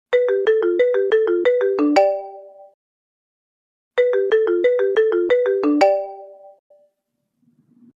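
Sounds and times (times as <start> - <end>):
marimba: 0.1 - 2.7, 4.0 - 6.6.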